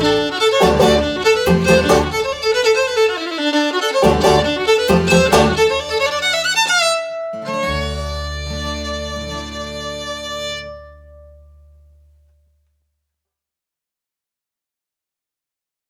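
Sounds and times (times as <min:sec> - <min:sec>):
fiddle jig: 0:00.0 - 0:11.2.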